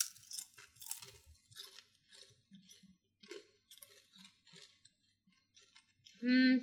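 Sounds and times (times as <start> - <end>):
crunchy chewing of a peanut snack: 0.0 - 6.2.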